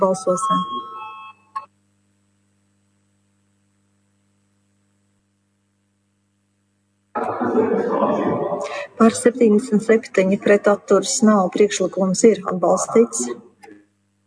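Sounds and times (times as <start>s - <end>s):
speech: 0.0s - 0.9s, 9.0s - 13.5s
brief electronic tone: 0.0s - 1.8s
laughter: 7.2s - 9.6s.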